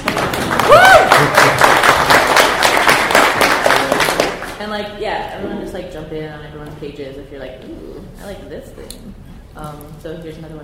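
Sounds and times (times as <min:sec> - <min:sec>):
audience applause: 0:00.0 - 0:04.5
speech: 0:06.0 - 0:10.6.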